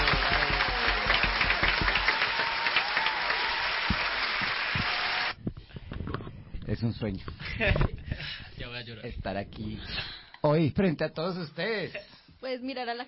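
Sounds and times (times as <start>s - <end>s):
audience applause: 0.0s - 5.4s
speech: 6.8s - 8.0s, 8.8s - 13.0s.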